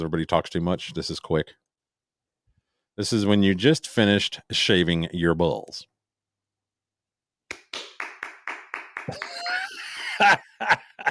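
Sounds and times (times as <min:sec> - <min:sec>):
speech: 0:00.0 - 0:01.6, 0:03.0 - 0:05.9, 0:09.1 - 0:09.3
skin-on-skin slaps imitating bare skin slapping: 0:07.5 - 0:09.0
laughter: 0:09.0 - 0:11.0.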